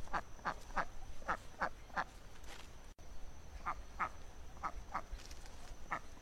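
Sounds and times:
wild duck quacking: 0.1 - 2.1, 3.6 - 5.1, 5.9 - 6.2.

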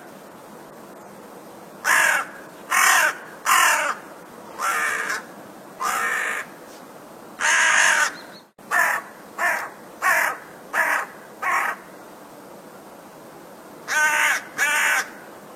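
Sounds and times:
crow cawing: 1.8 - 4.0, 4.6 - 6.5, 7.4 - 11.9, 13.9 - 15.2.

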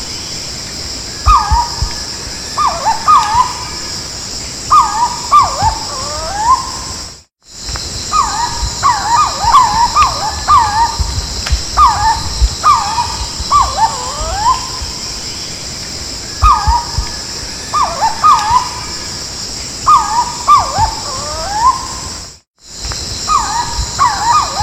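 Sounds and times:
Purple-throated fruitcrow giving soft whistled calls: 1.3 - 3.9, 4.7 - 6.9, 8.1 - 15.4, 16.4 - 19.0, 19.9 - 21.9, 23.3 - 24.6.

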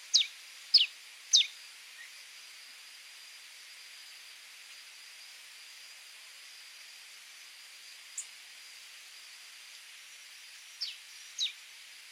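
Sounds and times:
red-crested soldier bird singing: 0.1 - 2.2, 10.8 - 11.6.

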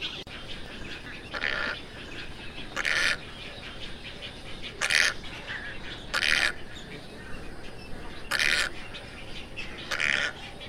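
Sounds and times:
tricolored heron squawks: 1.1 - 3.4, 4.7 - 6.8, 8.2 - 8.9, 9.8 - 10.4.

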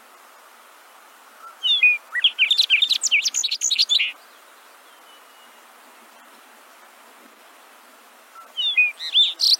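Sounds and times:
Bobolink bubbly metallic jumbled song: 1.4 - 4.2, 8.4 - 9.5.

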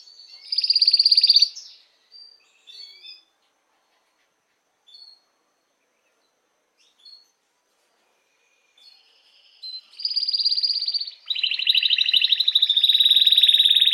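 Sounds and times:
Belgian mosaic canary singing: 0.0 - 3.3, 8.8 - 13.9.

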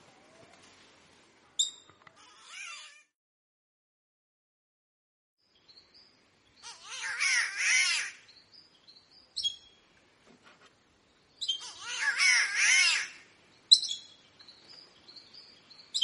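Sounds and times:
green catbird moaning cat-like wail: 2.2 - 3.1, 6.7 - 8.2, 11.7 - 13.2.

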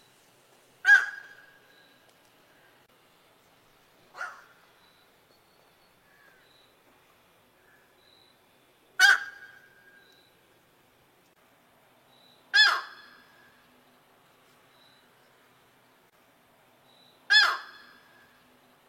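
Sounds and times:
yellow-crowned night heron giving harsh squawks: 0.8 - 1.4, 12.6 - 13.2, 17.3 - 18.0.

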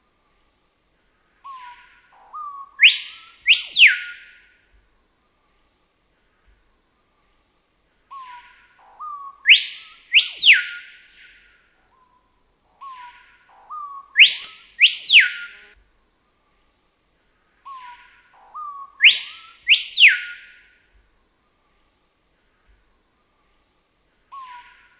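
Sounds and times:
screaming piha song of loud piercing whistles: 2.4 - 4.6, 9.0 - 12.2, 12.8 - 15.8, 18.6 - 20.8.

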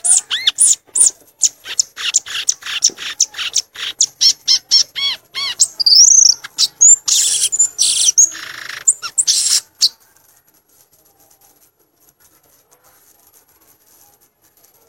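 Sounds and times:
violaceous euphonia song: 0.0 - 10.0.

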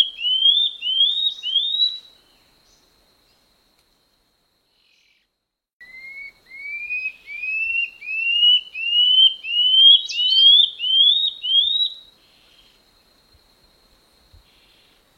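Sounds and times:
common scale-backed antbird song of upslurred whistles: 0.0 - 2.1, 5.8 - 12.8.

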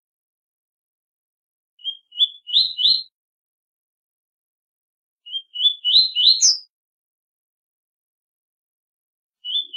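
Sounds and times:
double-collared seedeater singing rising whistled phrases: 1.8 - 3.1, 5.3 - 6.7, 9.4 - 9.7.

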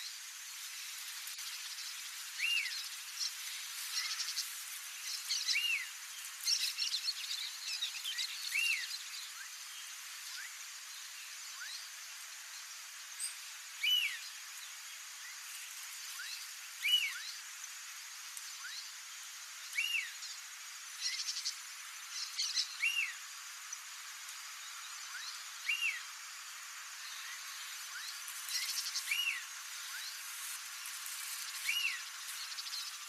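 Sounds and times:
great kiskadee singing: 1.4 - 11.9, 13.2 - 15.4, 16.1 - 17.4, 19.6 - 20.4, 21.0 - 23.9, 24.6 - 26.2, 26.9 - 30.3, 31.0 - 33.0.

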